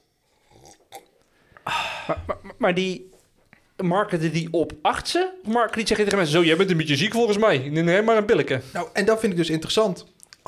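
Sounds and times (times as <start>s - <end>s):
person sipping chamomile tea: 0.1s - 2.6s
speech: 1.7s - 3.1s, 3.8s - 10.4s.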